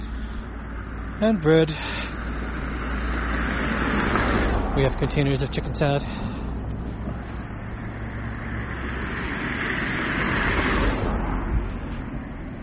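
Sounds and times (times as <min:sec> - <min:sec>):
road traffic passing: 0:00.0 - 0:12.6
speech: 0:01.2 - 0:02.2, 0:04.8 - 0:06.3.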